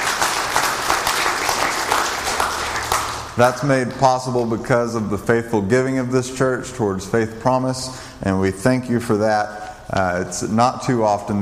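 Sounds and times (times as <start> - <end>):
audience applause: 0.0 - 3.4
speech: 3.4 - 11.4.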